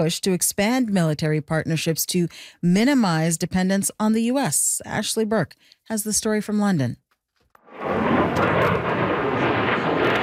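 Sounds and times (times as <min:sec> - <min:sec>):
speech: 0:00.0 - 0:07.0
fighter jet roaring at an air show in the UK: 0:07.7 - 0:10.2.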